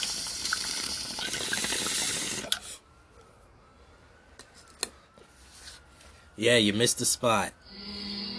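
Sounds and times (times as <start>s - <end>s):
bong water bubbling during a hit: 0.0s - 2.6s
speech: 6.4s - 7.6s.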